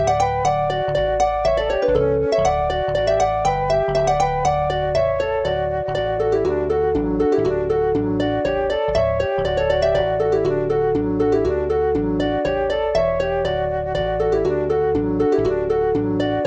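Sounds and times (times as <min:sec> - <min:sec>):
flute VST: 0:00.0 - 0:16.4
virtual harp VST: 0:00.0 - 0:16.4.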